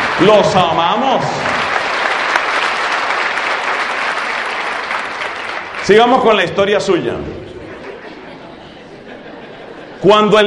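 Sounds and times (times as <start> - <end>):
audience applause: 0.0 - 6.6
speech: 0.2 - 1.6, 5.9 - 7.5, 10.0 - 10.4
laughter: 7.4 - 10.4.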